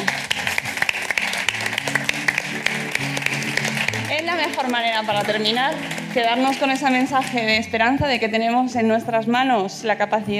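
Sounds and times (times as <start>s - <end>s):
audience applause: 0.0s - 7.6s
speech: 4.5s - 10.3s.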